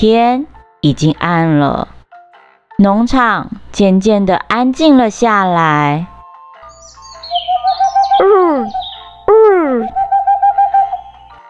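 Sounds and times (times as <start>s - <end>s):
speech: 0.0s - 2.0s, 2.8s - 6.1s
owl hooting: 6.7s - 11.4s.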